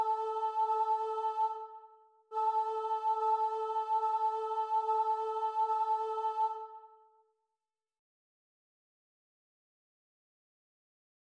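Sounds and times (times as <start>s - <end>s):
chanting: 0.0s - 7.2s.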